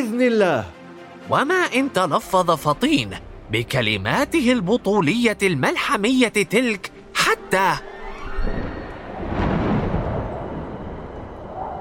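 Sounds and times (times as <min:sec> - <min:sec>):
speech: 0:00.0 - 0:07.9
thunderstorm: 0:08.3 - 0:11.7
lightning strike: 0:08.6 - 0:11.7.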